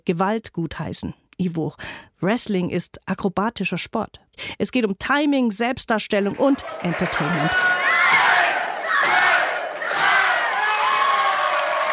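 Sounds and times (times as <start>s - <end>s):
speech: 0.0s - 8.2s
wrestling crowd chanting a count: 6.6s - 11.9s.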